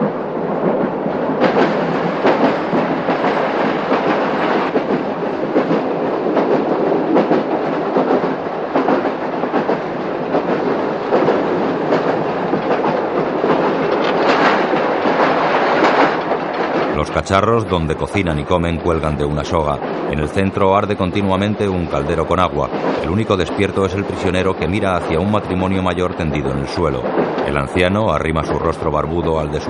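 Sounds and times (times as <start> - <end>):
passenger train rumbling through the night: 0.0 - 29.6
train wheels clickety-clacking on the rails: 0.0 - 29.6
speech: 17.2 - 29.6.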